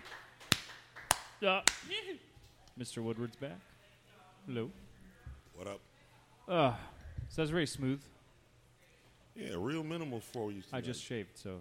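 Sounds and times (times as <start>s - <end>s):
sparse claps on a live radio show: 0.0s - 1.9s
speech: 1.4s - 3.7s, 4.4s - 4.9s, 5.6s - 5.9s, 6.5s - 8.2s, 9.4s - 11.5s.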